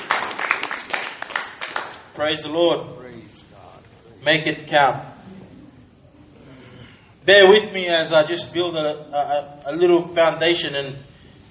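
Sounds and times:
audience clapping: 0.0 - 2.2
speech: 2.2 - 3.4, 4.2 - 5.1, 7.2 - 11.4.

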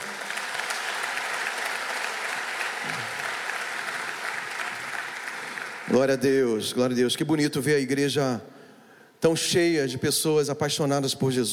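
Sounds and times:
audience applause: 0.0 - 6.0
speech: 5.9 - 8.5, 9.2 - 11.5.

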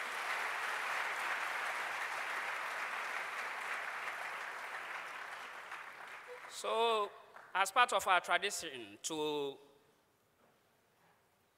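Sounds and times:
audience applause after inaugural lecture: 0.0 - 6.7
speech: 6.5 - 9.7.

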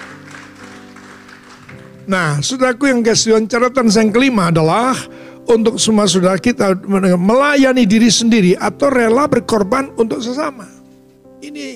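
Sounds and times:
audience applause: 0.0 - 2.0
speech: 2.1 - 10.8, 11.4 - 11.7.

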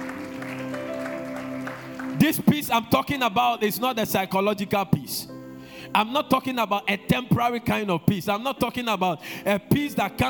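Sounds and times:
audience clapping: 0.0 - 3.0
speech: 2.2 - 10.2.

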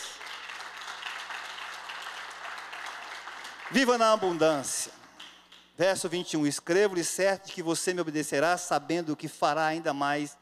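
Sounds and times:
audience applause: 0.0 - 5.3
speech: 3.7 - 5.0, 5.8 - 10.4.

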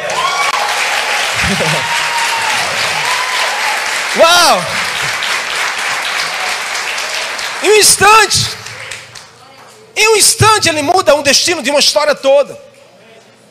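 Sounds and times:
audience applause: 0.0 - 9.4
laughter: 1.3 - 3.3
speech: 1.5 - 2.0, 4.2 - 4.8, 7.6 - 8.6, 10.0 - 12.7.

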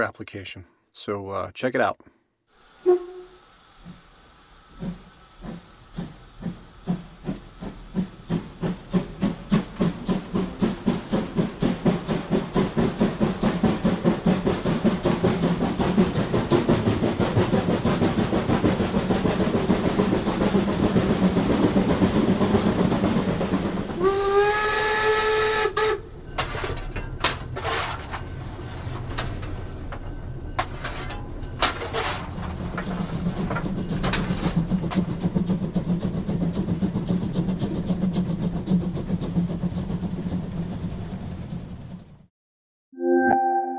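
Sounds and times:
speech: 0.0 - 2.2
hissing steam bursts: 2.5 - 20.0
steam locomotive chuffing: 2.6 - 26.8, 27.4 - 42.3
loud steam whistle: 2.8 - 3.6, 24.0 - 26.0.

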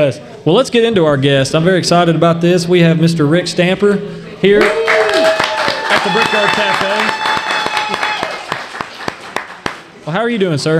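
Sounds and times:
speech: 0.0 - 5.0, 6.0 - 7.2, 10.1 - 10.7
people clapping for guest: 4.6 - 10.0.

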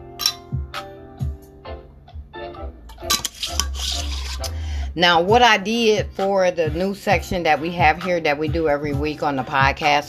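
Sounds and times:
glassy clinks while getting a drink of water: 0.2 - 0.5
speech: 4.9 - 10.0.

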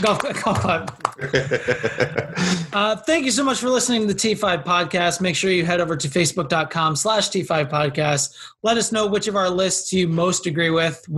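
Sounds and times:
golf clap, light polite clapping: 0.0 - 1.6
laughter: 0.0 - 2.8
speech: 0.0 - 11.1.

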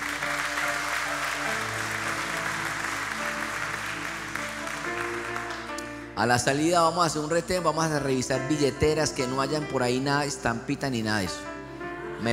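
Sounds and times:
church audience applause: 0.0 - 6.1
speech: 6.2 - 11.5.

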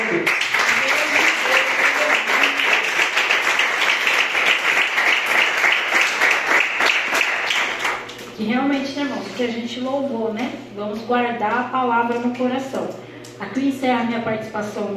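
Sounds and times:
audience applause: 0.0 - 8.1
speech: 9.4 - 14.9.

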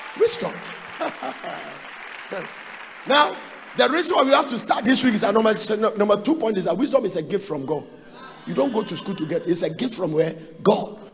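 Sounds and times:
audience applause: 0.0 - 5.8
speech: 0.2 - 11.0
laughter: 0.8 - 2.5, 8.1 - 9.8.

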